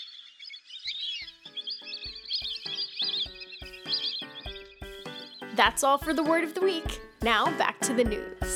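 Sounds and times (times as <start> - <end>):
ducks quacking: 0.3 - 6.0
speech: 5.6 - 8.4.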